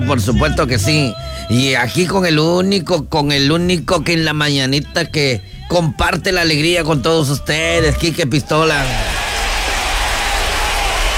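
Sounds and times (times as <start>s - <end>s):
speech: 0.1s - 9.2s
audience applause: 8.8s - 11.1s.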